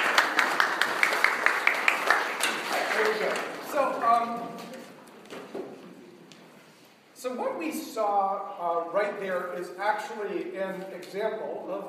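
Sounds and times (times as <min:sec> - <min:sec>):
round of applause: 0:00.0 - 0:03.9
speech: 0:07.2 - 0:11.8.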